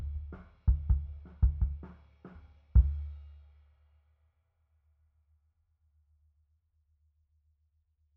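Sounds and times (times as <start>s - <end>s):
sub kick drum: 0.0s - 1.9s.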